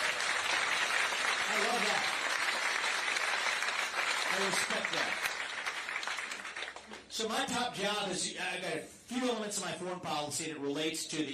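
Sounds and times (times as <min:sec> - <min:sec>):
audience applause: 0:00.0 - 0:07.1
speech: 0:04.4 - 0:05.3, 0:07.2 - 0:11.3.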